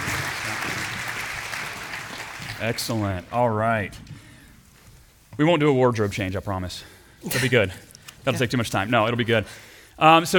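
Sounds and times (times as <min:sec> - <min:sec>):
audience applause: 0:00.0 - 0:03.1
speech: 0:02.6 - 0:04.2, 0:05.4 - 0:10.3.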